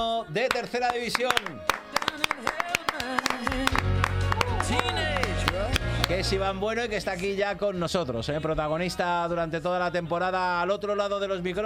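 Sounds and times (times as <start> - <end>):
speech: 0.0 - 3.9, 4.7 - 11.6
applause: 0.4 - 6.3.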